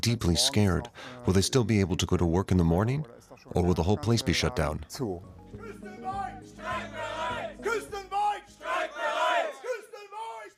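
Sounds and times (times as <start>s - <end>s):
speech: 0.0s - 6.2s
angry protesting Volkswagen factory workers shouting: 5.6s - 10.5s.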